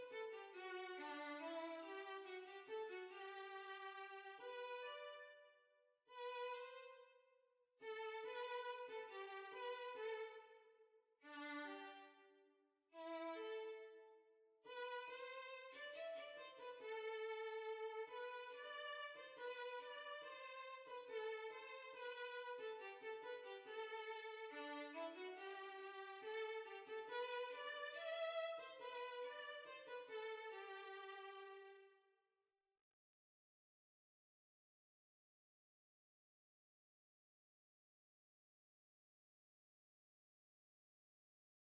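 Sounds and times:
violin: 0:00.0 - 0:05.5, 0:06.1 - 0:07.1, 0:07.8 - 0:10.6, 0:11.2 - 0:12.4, 0:13.0 - 0:14.1, 0:14.7 - 0:31.9.

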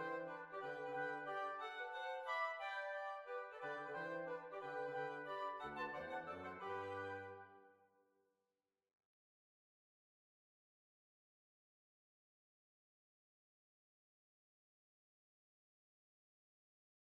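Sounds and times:
waltz music: 0:00.0 - 0:07.6.

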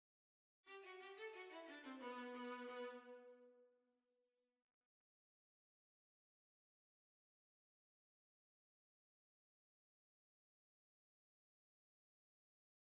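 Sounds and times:
violin: 0:00.7 - 0:03.6.

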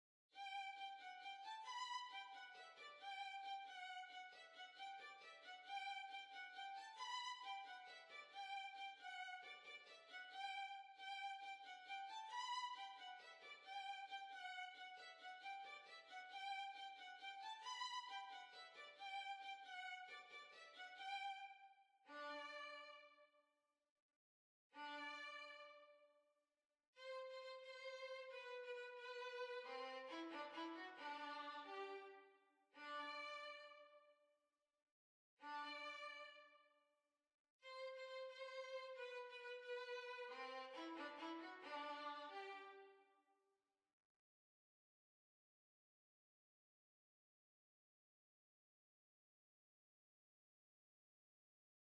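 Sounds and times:
violin: 0:00.4 - 0:23.2, 0:24.8 - 0:26.0, 0:27.0 - 0:34.1, 0:35.4 - 0:36.7, 0:37.6 - 0:43.0.

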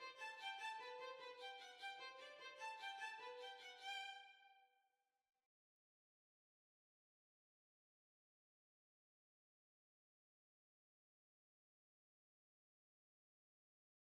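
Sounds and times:
violin: 0:00.0 - 0:04.6.

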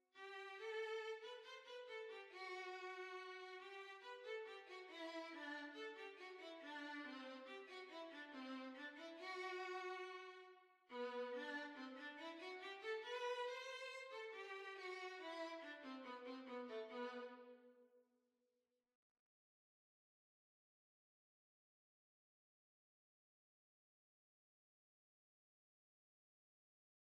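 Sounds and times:
violin: 0:00.0 - 0:17.8.

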